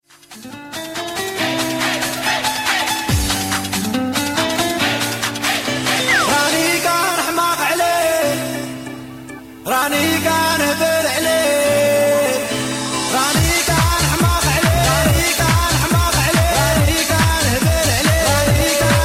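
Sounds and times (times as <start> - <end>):
Arabic dance mix: 0.4 - 8.6, 9.8 - 19.0.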